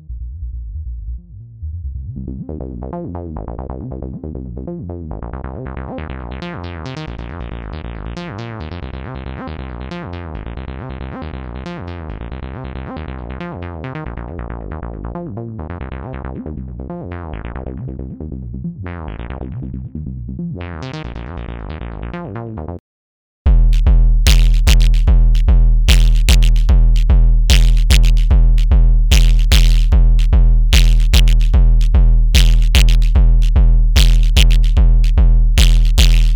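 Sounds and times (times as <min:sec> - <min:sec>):
noise: 0:23.6 - 0:36.3.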